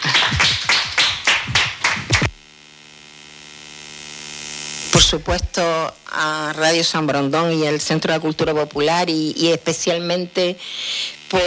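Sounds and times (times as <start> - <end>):
applause for guests: 0.0 - 2.3
speech: 5.1 - 11.4.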